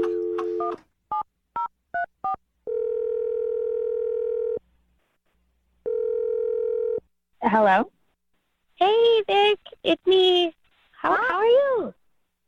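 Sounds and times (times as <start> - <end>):
telephone dialing tones: 0.0 - 4.6, 5.9 - 7.0
speech: 7.4 - 7.9, 8.8 - 11.9.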